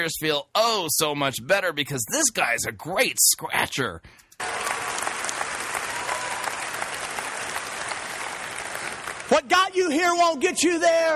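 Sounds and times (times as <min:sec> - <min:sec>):
speech: 0:00.0 - 0:04.6, 0:09.3 - 0:11.1
crowd cheering and applauding: 0:04.4 - 0:09.6.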